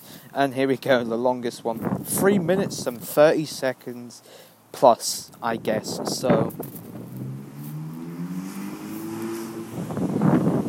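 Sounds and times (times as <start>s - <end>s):
speech: 0.4s - 7.0s
car passing outdoors: 6.6s - 10.6s.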